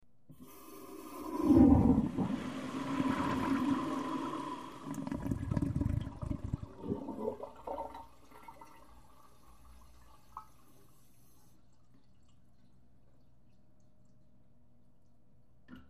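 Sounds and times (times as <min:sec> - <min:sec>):
toilet flushing slowly: 0:00.3 - 0:12.0.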